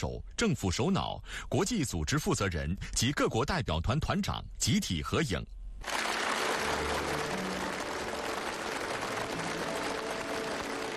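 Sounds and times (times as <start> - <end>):
speech: 0.0 - 6.0
warm applause from a large crowd: 5.8 - 10.9.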